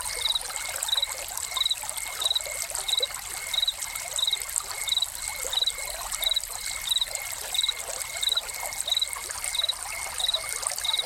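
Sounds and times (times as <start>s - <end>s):
crickets chirping: 0.0s - 11.0s
trickling splashing water: 0.0s - 11.0s.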